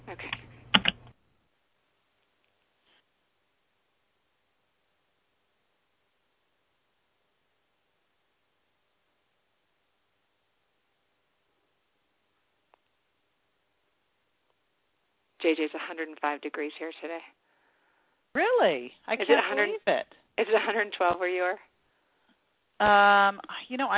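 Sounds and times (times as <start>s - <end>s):
computer mouse clicking as a caller's name is selected: 0.3s - 1.1s
speech: 15.4s - 17.4s, 18.4s - 21.7s, 22.8s - 23.9s.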